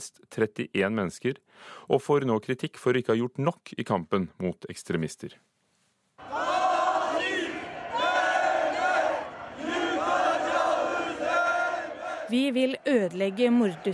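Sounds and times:
speech: 0:00.0 - 0:05.6, 0:12.3 - 0:13.9
hundreds of demonstrators shouting in the streets of Istanbul: 0:06.2 - 0:13.9.

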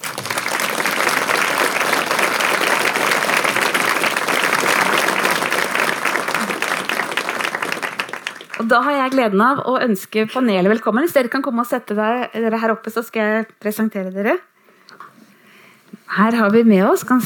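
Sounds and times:
audience applause: 0:00.0 - 0:09.2
speech: 0:08.7 - 0:14.5, 0:16.1 - 0:17.2.

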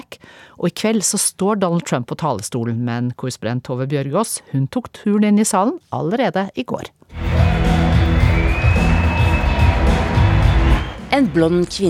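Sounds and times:
speech: 0:00.6 - 0:07.6, 0:11.2 - 0:11.8
audience cheering and clapping: 0:07.1 - 0:11.8.

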